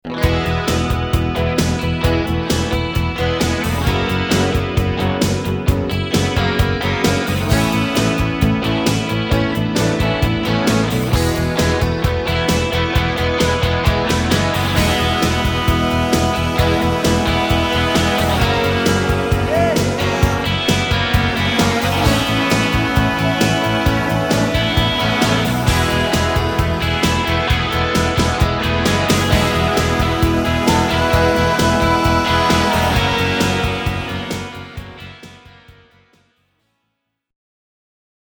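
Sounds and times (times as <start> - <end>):
alternative rock music: 0.0 - 36.4.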